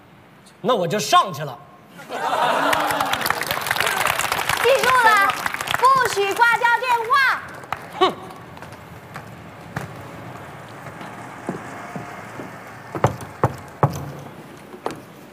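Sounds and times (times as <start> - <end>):
speech: 0.5 - 3.0, 6.1 - 8.2
laughter: 1.9 - 5.5, 7.7 - 8.6
knocking on a door: 12.4 - 14.2.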